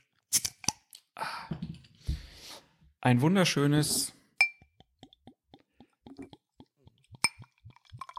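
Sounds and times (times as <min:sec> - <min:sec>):
speech: 0:03.0 - 0:04.2
beer glugging as poured: 0:04.7 - 0:08.1.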